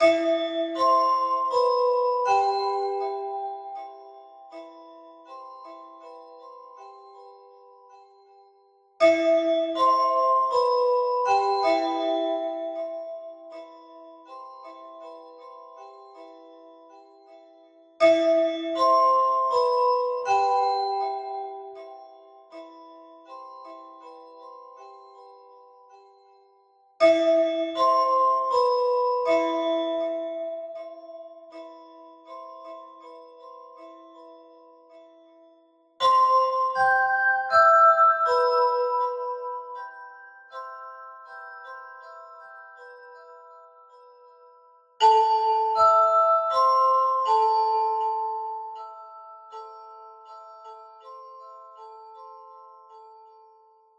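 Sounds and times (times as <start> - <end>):
simple music box loop: 0.0 - 53.9.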